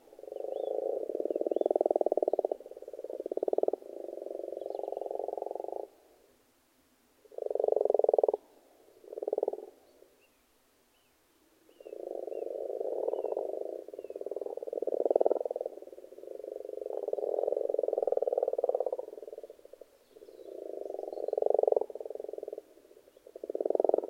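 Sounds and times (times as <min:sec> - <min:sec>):
frogs croaking in a pond: 0:00.0 - 0:06.2, 0:07.2 - 0:10.2, 0:11.6 - 0:24.0.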